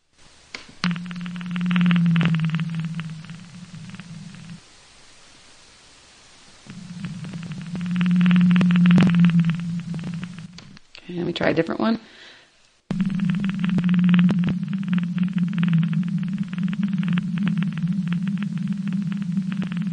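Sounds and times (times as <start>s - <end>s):
blue whale low-frequency call: 0.8s - 4.6s, 6.6s - 10.7s, 12.9s - 19.9s
speech: 11.5s - 12.2s.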